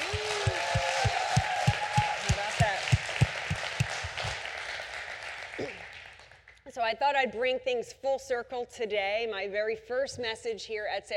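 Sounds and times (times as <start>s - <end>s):
church congregation at Salem Fields clapping: 0.0s - 6.6s
speech: 7.1s - 11.1s.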